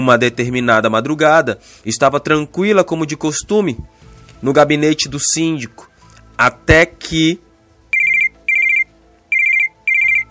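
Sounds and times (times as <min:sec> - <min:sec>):
speech: 0:00.0 - 0:07.4
telephone ringing with loud electronic trilling bursts: 0:07.9 - 0:10.2.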